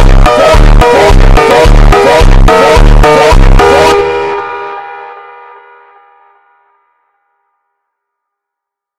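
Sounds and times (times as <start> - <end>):
slowed funk music: 0.0 - 4.9.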